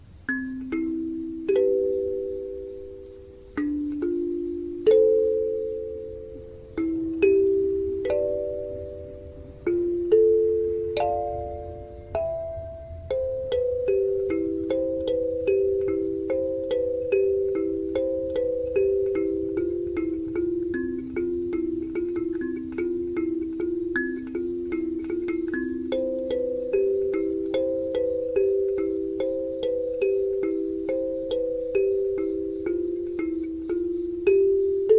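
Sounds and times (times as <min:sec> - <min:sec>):
kalimba cover: 0:00.3 - 0:34.9.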